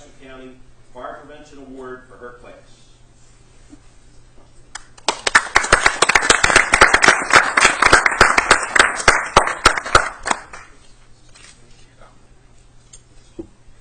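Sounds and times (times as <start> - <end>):
speech: 0.2 - 2.9
round of applause from a group: 4.7 - 10.8.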